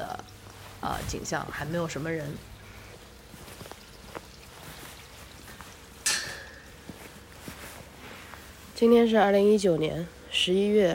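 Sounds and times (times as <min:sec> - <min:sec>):
mountain spring water flowing: 0:00.0 - 0:07.4
speech: 0:00.8 - 0:02.5, 0:08.8 - 0:10.9.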